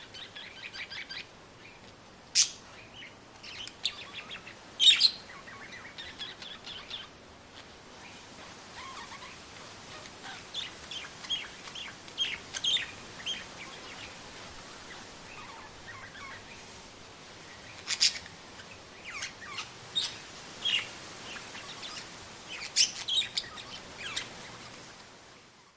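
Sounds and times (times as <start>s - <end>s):
parrots chirping and squawking: 2.3s - 7.1s, 8.0s - 14.1s, 14.8s - 16.5s, 17.7s - 24.7s.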